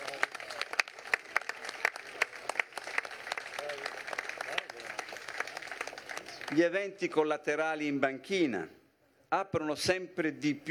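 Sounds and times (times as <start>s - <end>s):
applause: 0.0s - 6.7s
speech: 6.5s - 10.6s.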